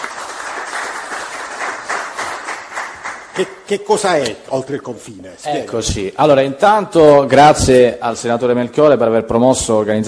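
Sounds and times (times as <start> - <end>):
audience applause: 0.0 - 4.1
speech: 3.4 - 10.0.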